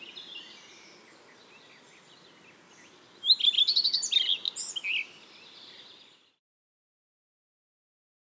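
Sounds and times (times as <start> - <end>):
redstart singing: 0.0 - 6.4.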